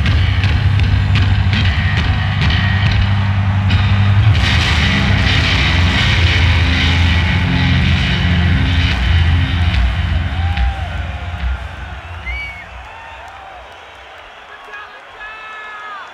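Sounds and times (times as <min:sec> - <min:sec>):
bass solo: 0:00.0 - 0:12.8.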